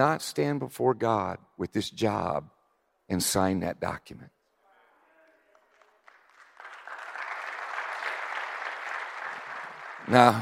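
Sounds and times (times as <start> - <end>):
speech: 0.0 - 4.4, 10.1 - 10.4
audience clapping: 5.2 - 10.4.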